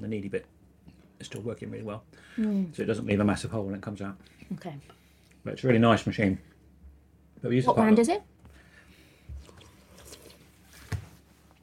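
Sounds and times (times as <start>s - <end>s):
speech: 0.0s - 0.6s, 1.2s - 6.5s, 7.4s - 8.3s
person slurping hot soup: 9.4s - 10.5s.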